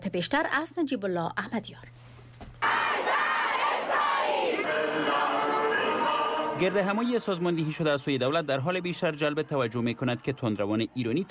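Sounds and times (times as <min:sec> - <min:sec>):
speech: 0:00.1 - 0:02.1, 0:06.6 - 0:11.3
crowd chanting anti-American slogans: 0:02.6 - 0:07.1.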